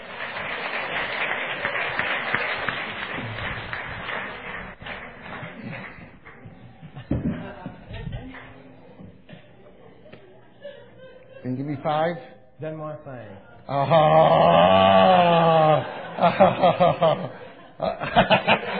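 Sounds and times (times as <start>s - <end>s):
audience applause: 0.0s - 6.4s
laughter: 10.4s - 11.8s, 13.7s - 18.7s
speech: 11.8s - 18.6s.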